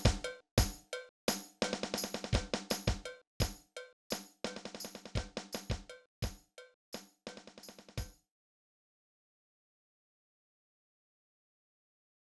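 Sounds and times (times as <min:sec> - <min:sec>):
lower percussion of a bridal march: 0:00.0 - 0:08.2.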